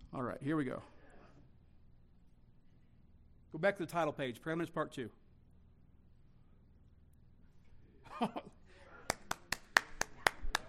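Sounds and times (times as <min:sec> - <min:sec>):
speech: 0:00.1 - 0:01.0, 0:03.5 - 0:05.2, 0:08.2 - 0:08.5
audience clapping: 0:09.1 - 0:10.6.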